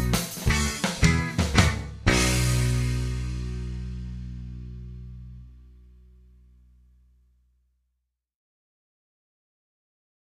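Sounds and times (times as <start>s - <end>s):
backing music: 0.0s - 5.8s.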